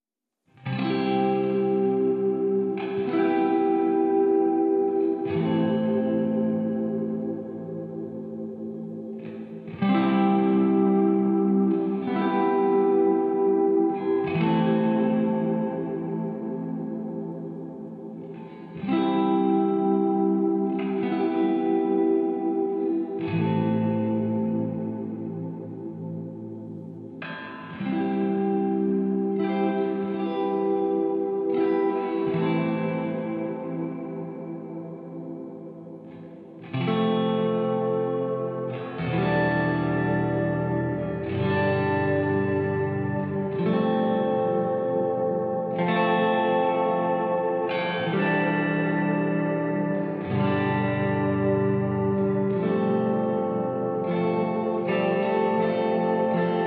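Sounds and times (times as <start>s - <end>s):
ambient music mix: 0.7s - 56.6s.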